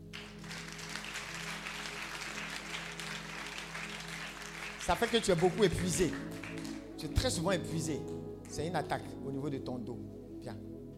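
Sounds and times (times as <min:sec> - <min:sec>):
congregation applauding to acclaim Jesus: 0:00.0 - 0:07.5
speech: 0:04.9 - 0:06.4, 0:07.0 - 0:10.7.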